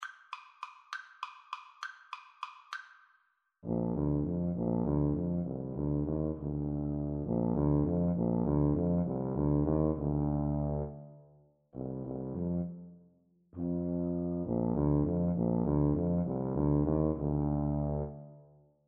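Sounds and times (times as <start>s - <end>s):
tuba duet: 3.6s - 11.2s, 11.8s - 13.0s, 13.6s - 18.5s.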